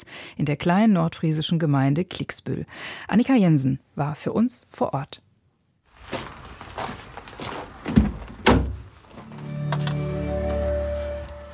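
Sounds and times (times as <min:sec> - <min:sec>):
speech: 0:00.0 - 0:05.2
rustling and shuffling getting into a car: 0:05.9 - 0:11.5
car door shutting: 0:07.9 - 0:08.9.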